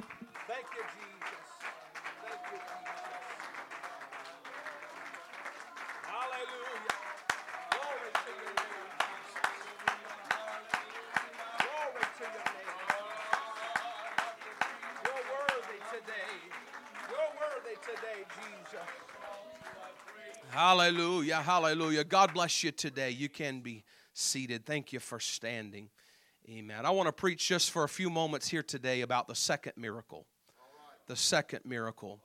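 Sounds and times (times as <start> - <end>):
audience clapping hands in praise: 0.0 - 23.0
speech: 20.6 - 30.3, 31.1 - 32.2.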